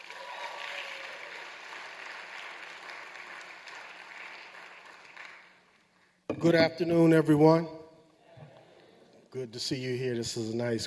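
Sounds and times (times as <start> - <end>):
crowd applause: 0.0 - 5.8
speech: 6.4 - 7.8, 9.3 - 10.8.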